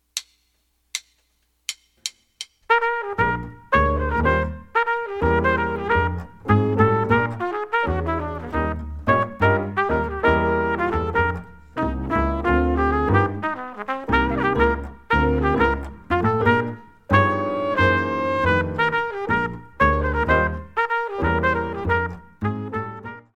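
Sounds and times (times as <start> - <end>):
drumless backing track: 0.0 - 23.2.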